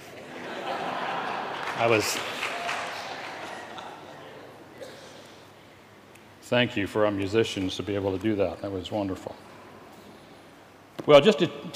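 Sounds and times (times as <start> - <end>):
laughter: 0.0 - 4.8
audience clapping: 1.0 - 4.6
speech: 1.8 - 2.5, 6.5 - 9.5, 11.1 - 11.7.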